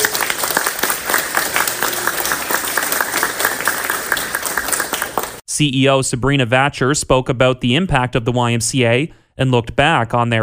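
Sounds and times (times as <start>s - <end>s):
audience applause: 0.0s - 5.4s
speech: 5.6s - 10.4s.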